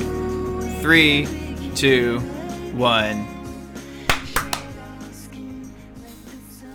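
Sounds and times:
speech: 0.9s - 3.3s
sharp hand claps used as a sync clap: 4.1s - 4.8s.

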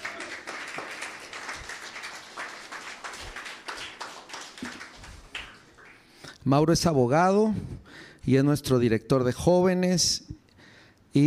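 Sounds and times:
audience applause: 0.0s - 6.1s
speech: 6.4s - 10.3s.

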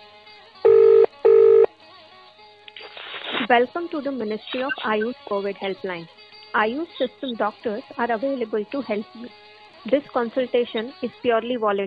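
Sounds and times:
telephone call dialing: 0.7s - 1.7s
speech: 3.5s - 11.8s.

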